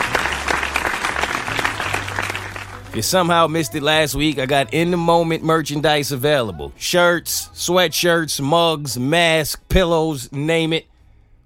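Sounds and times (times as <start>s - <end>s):
round of applause: 0.0s - 3.8s
speech: 2.9s - 10.9s.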